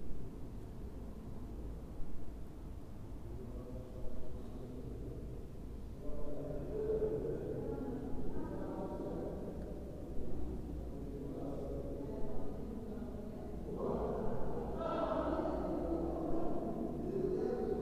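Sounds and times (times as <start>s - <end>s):
mosque ambience in Duisburg: 0.0s - 17.8s.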